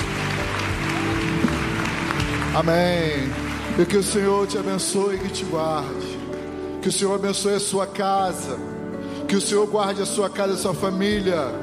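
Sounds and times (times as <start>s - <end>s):
audience applause: 0.0s - 5.8s
speech: 2.6s - 6.1s, 6.8s - 8.7s, 9.3s - 11.6s.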